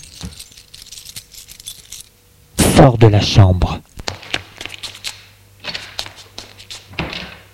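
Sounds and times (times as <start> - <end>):
keys jangling as they are picked up: 0.0 - 2.2
speech: 2.8 - 3.9.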